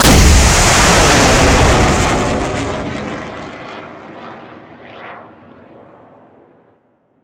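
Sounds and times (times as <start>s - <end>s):
weapon missile launch: 0.0s - 3.6s.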